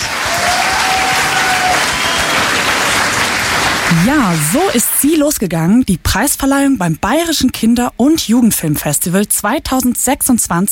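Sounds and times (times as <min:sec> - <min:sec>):
audience applause: 0:00.0 - 0:04.6
speech: 0:04.0 - 0:10.7.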